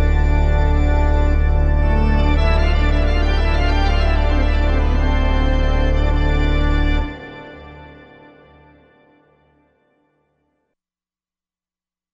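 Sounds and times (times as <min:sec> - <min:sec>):
grand pipe organ: 0:00.0 - 0:09.1.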